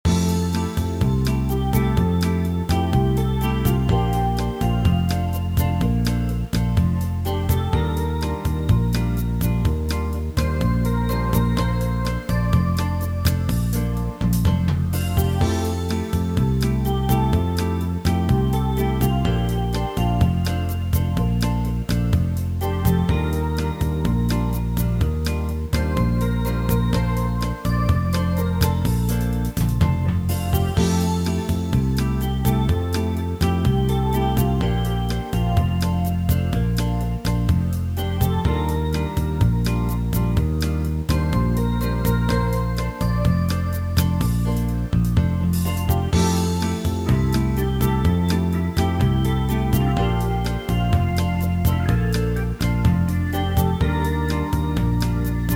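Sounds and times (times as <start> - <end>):
bossa nova music: 0.0 - 55.5.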